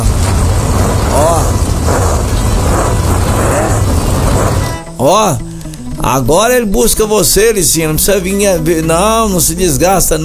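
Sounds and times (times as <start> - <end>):
loud steady engine roar: 0.0 - 5.0
speech: 5.0 - 10.2.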